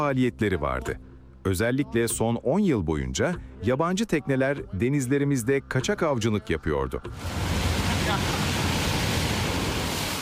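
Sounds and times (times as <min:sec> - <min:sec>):
speech: 0:00.0 - 0:08.4
waves on Lido beach in Somalia: 0:07.1 - 0:10.1.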